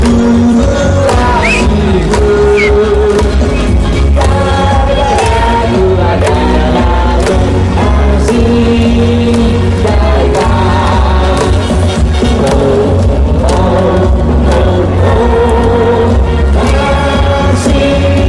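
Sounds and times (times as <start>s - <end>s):
claps or bangs: 0.0s - 15.8s
crowd chanting or singing: 0.8s - 18.2s.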